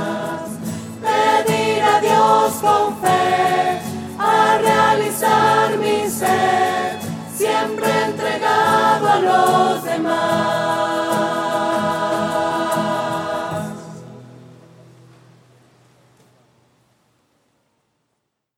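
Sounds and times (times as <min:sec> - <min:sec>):
voices singing: 0:00.0 - 0:14.1.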